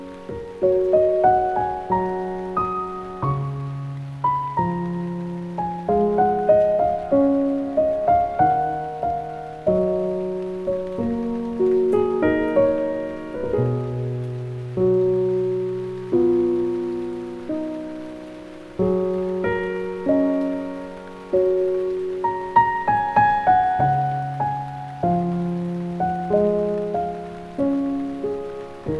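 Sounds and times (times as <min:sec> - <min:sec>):
calming piano lullaby: 0:00.0 - 0:28.9
rain: 0:00.0 - 0:28.9.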